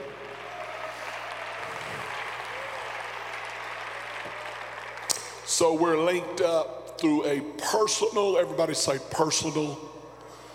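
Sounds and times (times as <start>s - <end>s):
audience clapping hands: 0.0s - 5.6s
speech: 5.6s - 10.0s.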